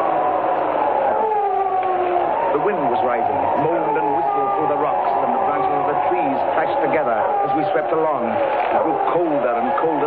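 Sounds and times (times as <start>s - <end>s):
dog howling: 0.0s - 10.0s.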